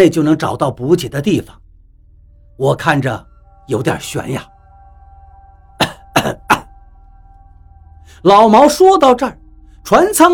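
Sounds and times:
speech: 0.0 - 1.6, 2.6 - 4.5, 8.2 - 10.3
coughing at a ship cabin door: 5.8 - 6.8.

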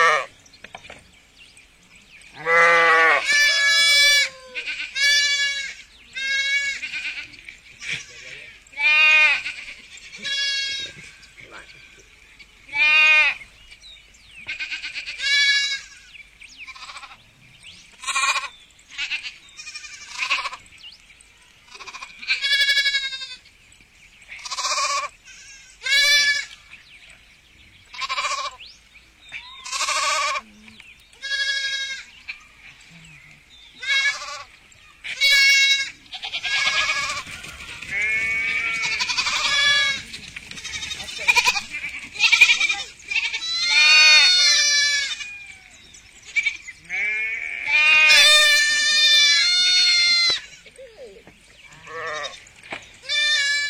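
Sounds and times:
sheep bleating: 2.4 - 11.3, 12.7 - 13.4, 14.5 - 17.2, 18.0 - 20.6, 21.7 - 23.4, 24.4 - 26.6, 28.0 - 28.6, 29.4 - 30.5, 31.2 - 32.4, 33.8 - 37.3, 37.9 - 45.6, 46.3 - 50.8, 51.7 - 52.4, 53.0 - 53.6.

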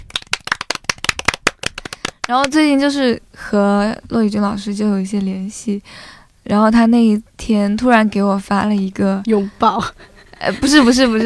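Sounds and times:
hand clapping: 0.0 - 2.6
speech: 2.3 - 11.2.

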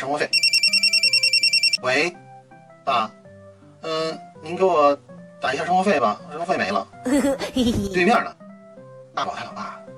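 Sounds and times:
speech: 0.0 - 1.0, 1.8 - 2.2, 2.9 - 3.2, 3.8 - 8.4, 9.2 - 9.8
telephone ringing: 0.3 - 1.8.

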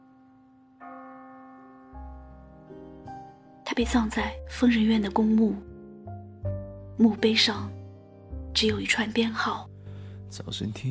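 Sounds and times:
church bell tolling: 0.8 - 3.4
speech: 3.8 - 5.7, 7.0 - 7.8, 8.6 - 9.7, 10.3 - 10.9.

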